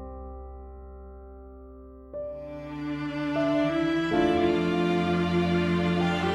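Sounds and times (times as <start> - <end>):
epic cinematic music: 2.4 - 6.3.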